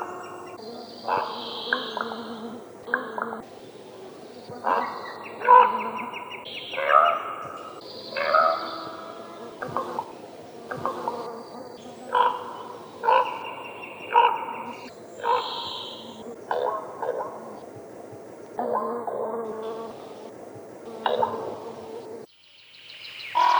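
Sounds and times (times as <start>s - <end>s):
common raven rough throaty calls: 0.0s - 22.3s, 23.4s - 23.5s.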